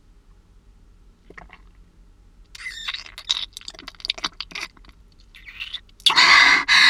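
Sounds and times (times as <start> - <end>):
ear licking: 1.2 - 1.8, 2.5 - 6.2
oral sex sucking sounds: 2.6 - 6.7.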